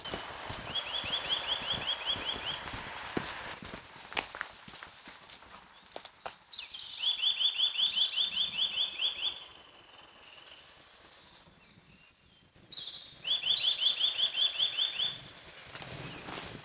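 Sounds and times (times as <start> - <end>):
bird singing rapid high-pitched chirps like an electronic alarm: 0.0 - 2.8, 6.5 - 15.8.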